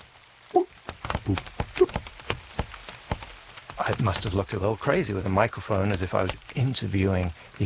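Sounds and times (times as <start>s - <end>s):
raindrops pattering on leaves: 0.0s - 7.6s
speech: 4.0s - 7.6s.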